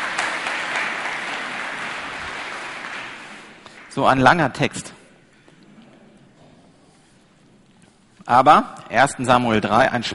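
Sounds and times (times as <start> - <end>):
audience applause: 0.0 - 4.0
speech: 4.0 - 5.0, 8.3 - 10.1.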